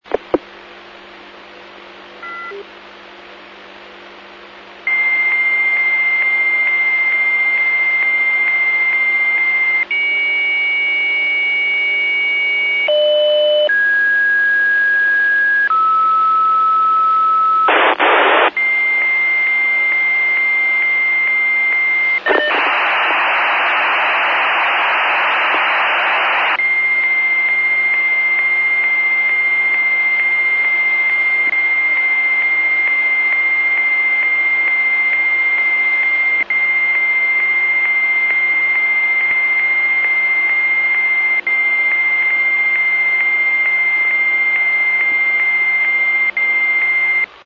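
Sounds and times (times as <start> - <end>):
modem: 0.0 - 47.4.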